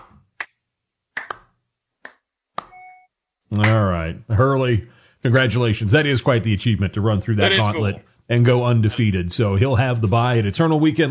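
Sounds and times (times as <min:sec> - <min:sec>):
slow clap: 0:01.2 - 0:02.7
speech: 0:03.5 - 0:11.1.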